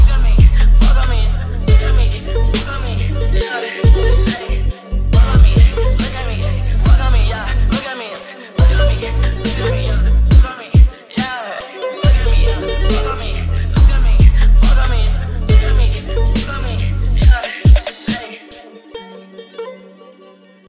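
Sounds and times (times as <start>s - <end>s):
boosted bass: 0.0s - 7.8s, 8.6s - 10.4s, 12.0s - 17.4s.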